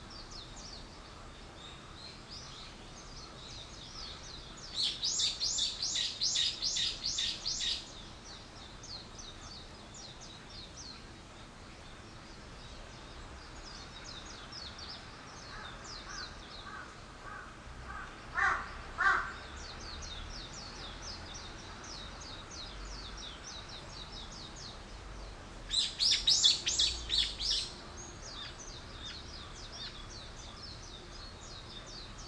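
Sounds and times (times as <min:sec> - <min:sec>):
bird chirping: 0:00.0 - 0:17.0, 0:18.4 - 0:32.2
rasping caws: 0:15.6 - 0:19.4.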